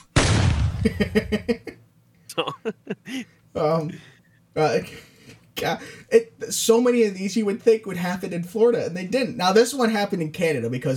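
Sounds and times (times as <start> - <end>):
gunfire sound effect: 0.0 - 1.2
speech: 0.8 - 1.8, 2.4 - 10.9.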